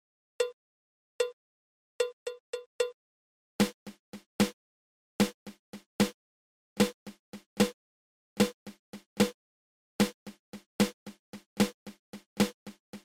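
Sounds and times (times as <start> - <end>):
flam accent drum rudiment: 3.6 - 4.6, 5.2 - 6.2, 6.8 - 7.8, 8.4 - 9.4, 10.0 - 13.0.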